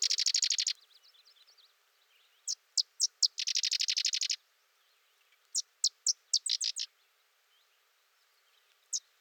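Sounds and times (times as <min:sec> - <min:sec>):
sedge wren song: 0:00.0 - 0:01.7, 0:02.4 - 0:04.4, 0:05.4 - 0:06.9.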